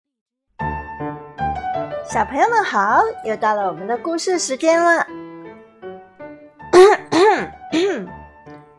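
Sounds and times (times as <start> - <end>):
speech: 2.1 - 5.2
throat clearing: 6.8 - 8.2.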